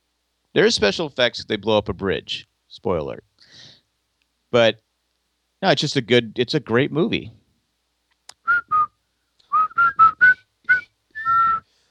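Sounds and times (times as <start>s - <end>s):
speech: 0.5s - 3.7s, 4.5s - 4.8s, 5.6s - 7.4s
whistled melody: 8.5s - 8.9s, 9.5s - 11.7s.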